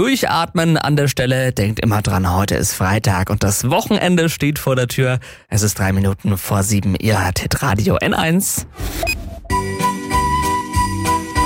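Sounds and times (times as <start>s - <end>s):
speech: 0.0s - 9.9s
Christmas song melody: 9.5s - 11.4s.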